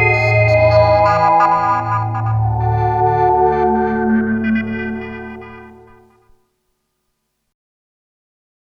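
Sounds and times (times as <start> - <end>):
heavy digital chorus sound: 0.0 - 6.2.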